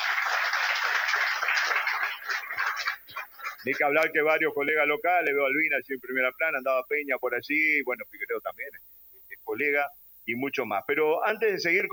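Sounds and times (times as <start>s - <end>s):
crowd applauding: 0.0s - 4.2s
speech: 3.6s - 8.9s, 9.5s - 11.9s.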